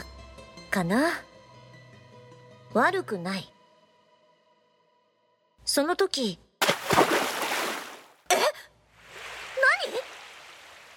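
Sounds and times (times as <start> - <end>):
speech: 0.7 - 1.3, 2.8 - 3.5, 5.7 - 6.4, 7.0 - 7.2
water splashing: 6.6 - 8.2, 9.0 - 10.9.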